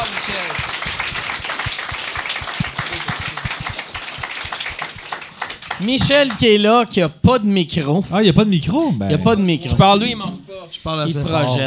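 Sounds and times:
audience applause: 0:00.0 - 0:06.6
speech: 0:05.8 - 0:11.6.

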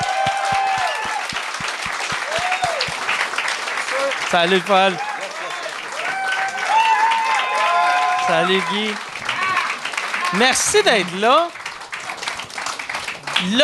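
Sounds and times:
audience applause: 0:00.0 - 0:13.6
speech: 0:04.3 - 0:05.1, 0:08.3 - 0:09.1, 0:10.3 - 0:11.6, 0:13.4 - 0:13.6.

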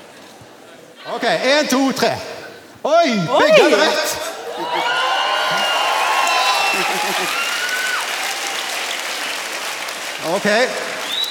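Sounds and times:
speech: 0:01.0 - 0:04.9, 0:06.8 - 0:07.4, 0:10.2 - 0:10.8
laughter: 0:01.8 - 0:08.0
crowd clapping: 0:03.4 - 0:11.2.

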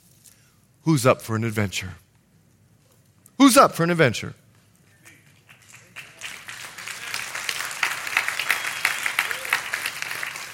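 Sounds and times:
speech: 0:00.9 - 0:02.0, 0:03.5 - 0:04.4
large crowd clapping: 0:05.0 - 0:10.5.

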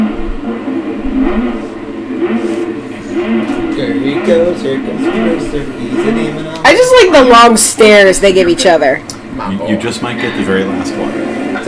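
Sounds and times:
car driving fast in a film scene, engine revving: 0:00.0 - 0:09.3
speech: 0:04.0 - 0:11.6.

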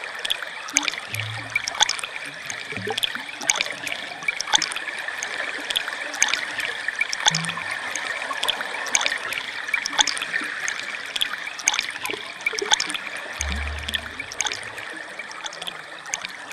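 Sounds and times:
water trickling and splashing: 0:00.0 - 0:16.5
low thumps or gurgles: 0:00.7 - 0:04.9, 0:07.0 - 0:10.1, 0:12.7 - 0:16.3.

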